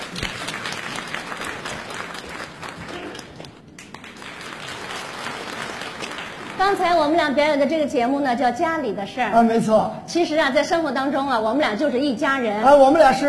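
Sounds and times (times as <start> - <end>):
audience clapping welcoming a contestant: 0.0 - 7.2
speech: 6.6 - 13.2.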